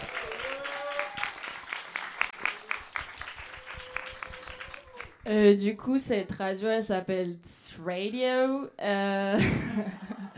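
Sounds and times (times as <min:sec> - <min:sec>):
audience applause: 0:00.0 - 0:05.2
speech: 0:05.3 - 0:10.0.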